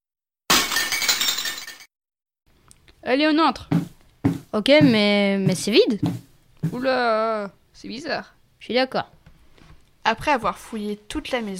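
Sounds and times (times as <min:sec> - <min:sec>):
glass shards tinkling: 0:00.5 - 0:01.9
glass window smashed with a makeshift pickaxe of branch, stone and ivy: 0:00.5 - 0:01.9
speech: 0:03.0 - 0:09.2, 0:10.0 - 0:11.5.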